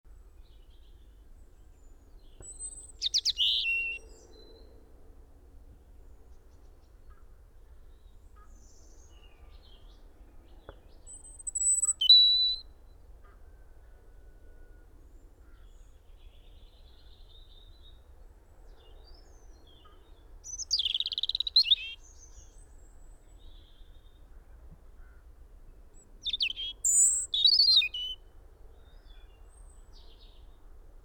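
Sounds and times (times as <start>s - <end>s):
European robin high whistled song: 2.4s - 4.0s, 11.1s - 12.6s, 20.5s - 22.2s, 26.2s - 28.2s.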